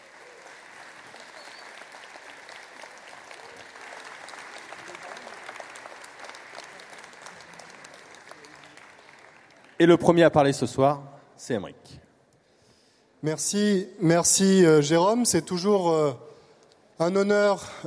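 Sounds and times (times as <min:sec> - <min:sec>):
audience applause: 0:00.0 - 0:10.0
speech: 0:09.8 - 0:12.0, 0:13.2 - 0:16.3, 0:17.0 - 0:17.8.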